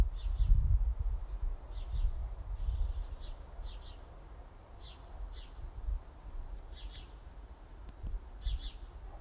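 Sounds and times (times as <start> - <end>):
house sparrow chirping: 0.2 - 0.6, 1.3 - 4.1, 4.8 - 5.6, 6.7 - 7.2, 8.4 - 8.9.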